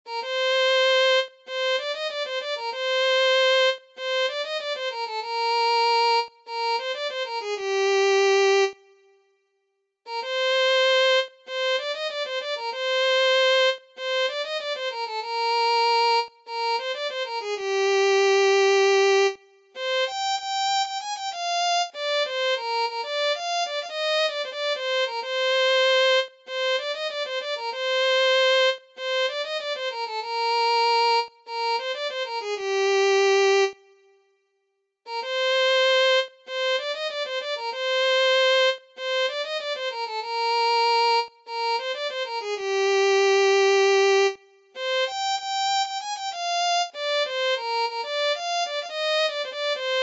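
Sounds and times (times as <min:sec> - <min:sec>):
violin: 0:00.0 - 0:08.9, 0:10.1 - 0:33.9, 0:35.1 - 0:50.0.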